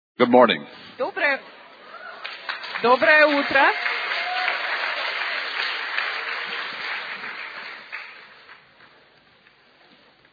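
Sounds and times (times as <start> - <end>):
speech: 0.2 - 1.5, 2.8 - 4.0
audience applause: 2.0 - 9.6.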